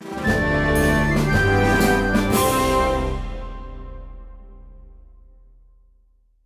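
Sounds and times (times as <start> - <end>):
losing fanfare: 0.0 - 3.9.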